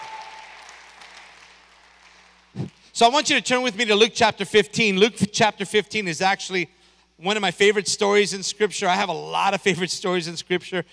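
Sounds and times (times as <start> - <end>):
audience applauding: 0.0 - 2.6
speech: 2.6 - 10.9.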